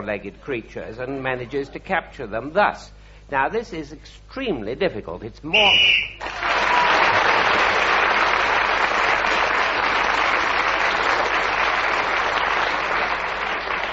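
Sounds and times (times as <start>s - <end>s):
speech: 0.0s - 6.5s
audience applause: 6.2s - 13.9s.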